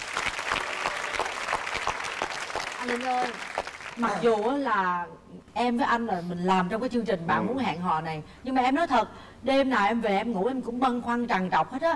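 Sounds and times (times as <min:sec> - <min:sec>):
applause from the audience of a dating show: 0:00.0 - 0:04.5
speech: 0:02.8 - 0:11.9.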